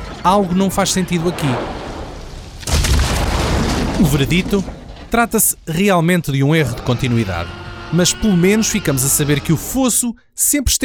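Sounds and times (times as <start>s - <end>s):
vehicle crashing off a cliff: 0.0s - 5.9s
low rumbling: 0.0s - 9.8s
speech: 0.2s - 1.8s, 4.0s - 10.8s.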